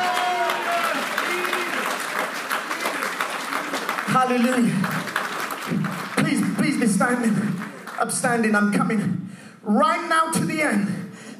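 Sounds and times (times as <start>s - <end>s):
audience clapping: 0.0s - 8.8s
speech: 4.2s - 5.1s, 7.0s - 11.0s.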